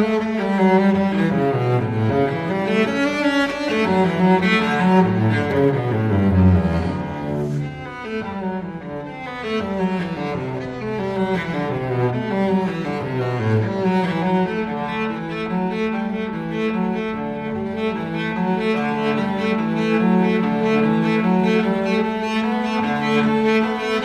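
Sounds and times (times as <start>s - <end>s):
solo cello piece in G major: 0.0s - 24.0s.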